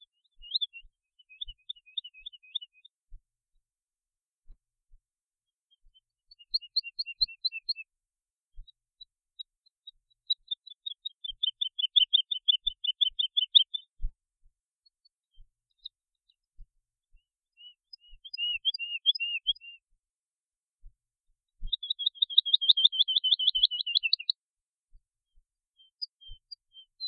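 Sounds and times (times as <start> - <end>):
woodlark song: 0.0 - 3.0, 5.7 - 7.9, 9.4 - 14.0, 14.8 - 20.0, 21.6 - 24.4, 25.8 - 27.0.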